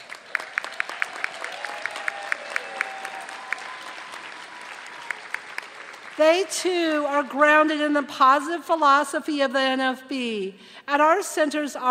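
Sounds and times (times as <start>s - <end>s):
crowd applauding: 0.0s - 6.5s
speech: 6.2s - 11.8s.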